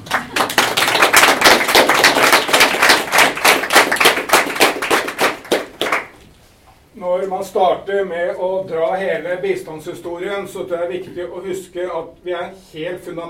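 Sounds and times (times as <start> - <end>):
audience applause: 0.0 - 6.1
speech: 7.3 - 13.2.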